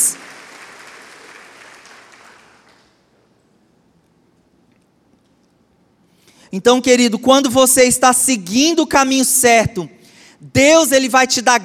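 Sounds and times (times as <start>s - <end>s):
audience applause: 0.0s - 2.9s
speech: 6.5s - 11.6s.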